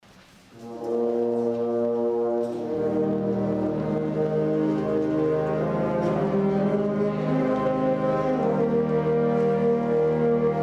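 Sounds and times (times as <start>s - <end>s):
wind ensemble playing: 0.4s - 10.6s.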